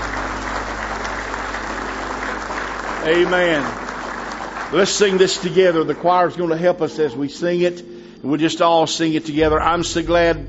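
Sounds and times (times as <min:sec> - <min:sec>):
audience clapping for the choir: 0:00.0 - 0:07.1
speech: 0:03.0 - 0:03.8, 0:04.7 - 0:10.4.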